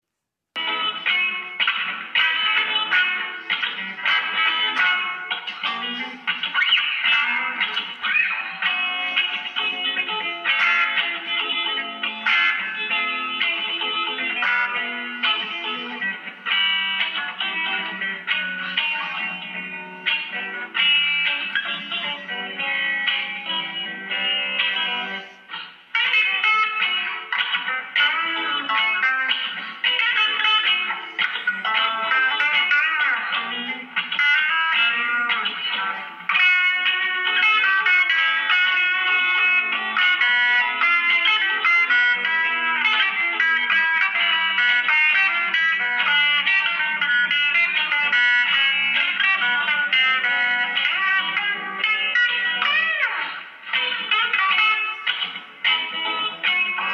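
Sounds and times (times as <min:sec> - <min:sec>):
funk music: 0:00.6 - 0:56.9.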